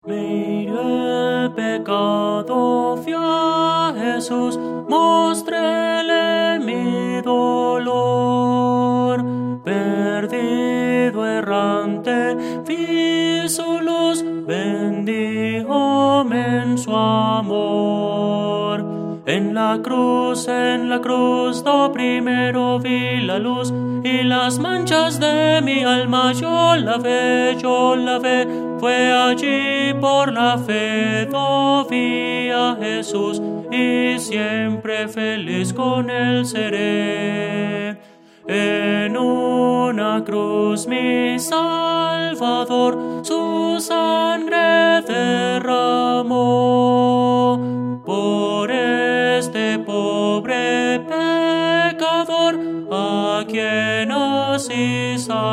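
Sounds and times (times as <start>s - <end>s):
tenor singing: 0.0s - 55.5s.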